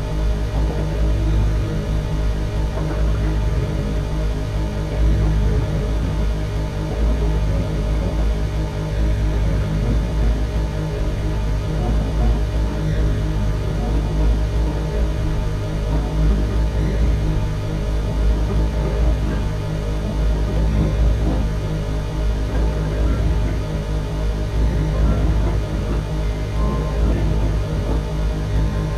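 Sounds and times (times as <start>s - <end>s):
drone: 0.0s - 28.9s.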